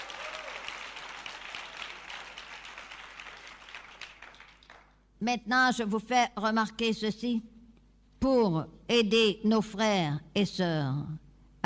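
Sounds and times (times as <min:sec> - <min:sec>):
audience applauding: 0:00.0 - 0:05.0
speech: 0:05.2 - 0:07.5, 0:08.2 - 0:11.6.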